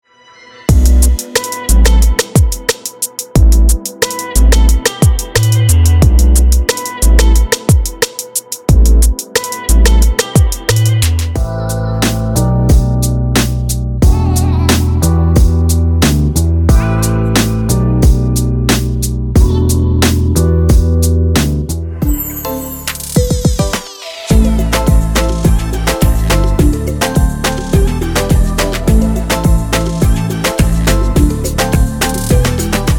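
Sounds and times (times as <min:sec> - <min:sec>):
urban pop music: 0:00.7 - 0:32.9.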